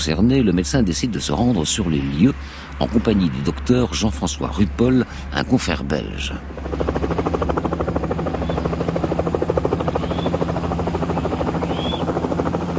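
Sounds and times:
speech: 0.0 - 7.0
helicopter low engine drone: 0.0 - 12.7
helicopter rotor thumping in flight to Yamboukou: 5.7 - 12.7
faint rising chirps: 9.7 - 12.3.

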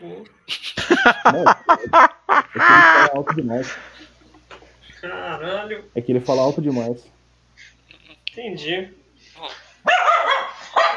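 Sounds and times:
speech: 0.1 - 3.9, 5.0 - 7.2, 8.4 - 10.1
laughter: 0.5 - 4.4
dog barking: 9.8 - 10.9.

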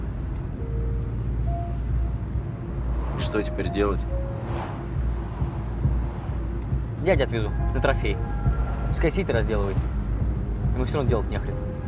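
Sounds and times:
foreign-made car engine and road noise: 0.0 - 11.8
speech: 3.2 - 4.8, 7.0 - 8.3, 8.9 - 10.0, 10.8 - 11.7.

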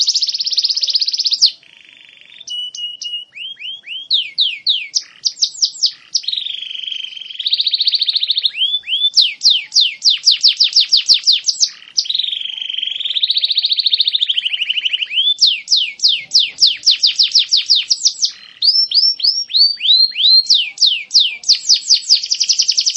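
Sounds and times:
champion canary singing: 0.0 - 22.9.

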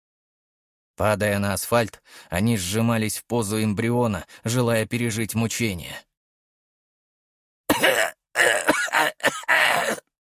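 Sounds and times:
speech: 1.0 - 6.1
old man's coughing fit: 7.7 - 10.1.

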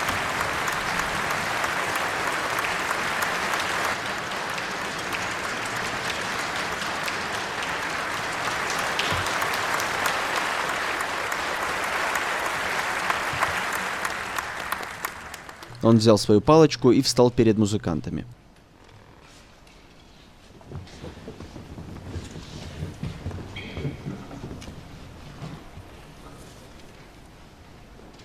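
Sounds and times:
concert audience standing and applauding the conductor: 0.0 - 15.7
speech: 15.8 - 18.4.

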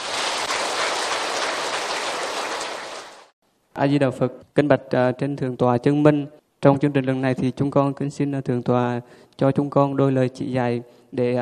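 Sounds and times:
crowd applause: 0.0 - 3.3
speech: 3.8 - 11.4.

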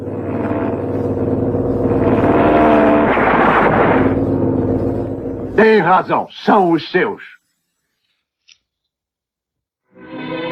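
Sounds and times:
military planes of the 34th Air Division droning overhead: 0.0 - 6.3
speech: 5.8 - 7.4.

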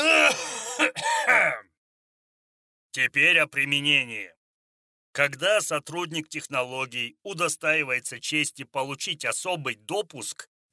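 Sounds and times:
throat clearing: 0.0 - 1.7
speech: 2.9 - 4.4, 5.2 - 10.5.

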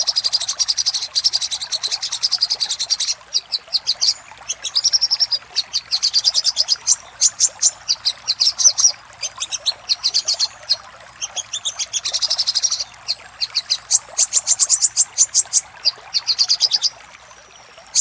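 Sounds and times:
spiderhunter-like bird metallic song: 0.0 - 17.9.

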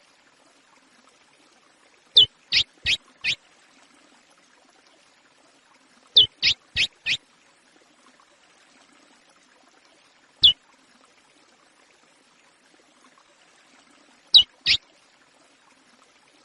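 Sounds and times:
chestnut-bellied seed finch singing: 2.2 - 3.4, 6.2 - 7.2, 14.4 - 14.8.

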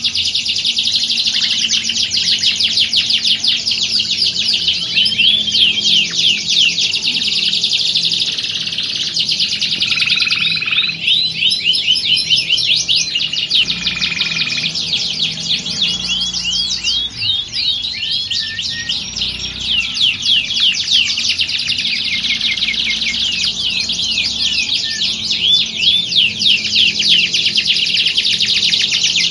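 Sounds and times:
canary singing trills: 0.0 - 29.2.

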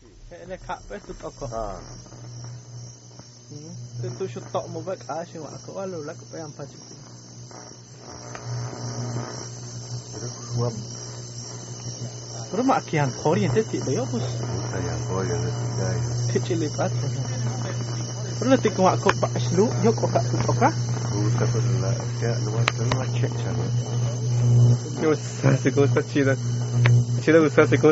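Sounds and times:
crackling of broken high-voltage cables: 0.0 - 27.9.

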